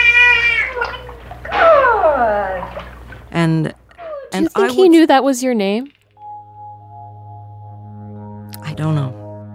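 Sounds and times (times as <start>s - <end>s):
animal mimicking a human word through its blowhole: 0.2s - 3.0s
speech: 3.4s - 3.8s, 4.4s - 6.0s, 8.8s - 9.2s.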